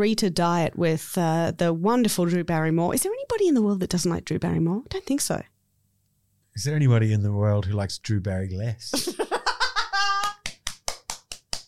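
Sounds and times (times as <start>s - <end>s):
speech: 0.0s - 5.5s, 6.6s - 9.1s
laugh-like voiced sounds: 8.9s - 10.4s
audience clapping: 10.0s - 11.6s.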